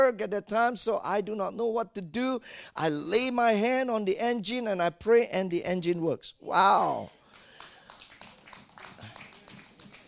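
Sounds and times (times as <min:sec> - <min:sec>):
speech: 0:00.0 - 0:07.2
audience clapping: 0:06.8 - 0:10.0.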